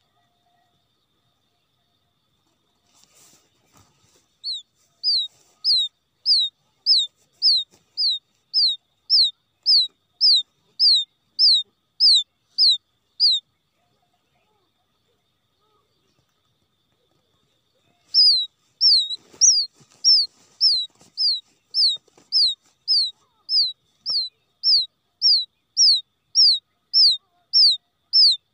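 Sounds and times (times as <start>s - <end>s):
rustling: 2.4s - 8.8s, 17.0s - 24.3s
quail chick peeping: 2.9s - 13.4s, 17.8s - 28.4s.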